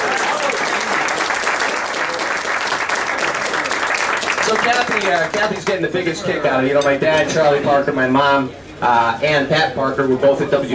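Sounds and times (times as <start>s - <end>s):
crowd clapping: 0.0s - 5.9s
speech: 4.5s - 10.7s.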